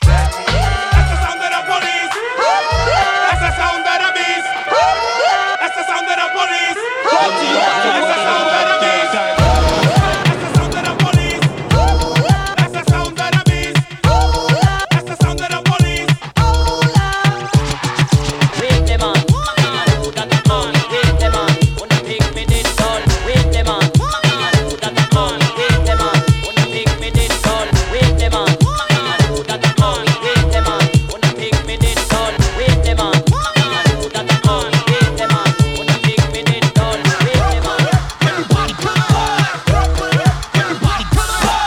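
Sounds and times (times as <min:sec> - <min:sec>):
dancehall party music: 0:00.0 - 0:41.6.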